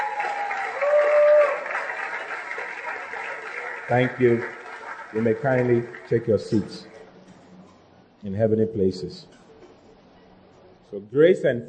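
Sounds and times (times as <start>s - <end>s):
audience clapping: 0.0s - 7.0s
speech: 3.9s - 6.9s, 8.2s - 9.4s, 10.9s - 11.6s.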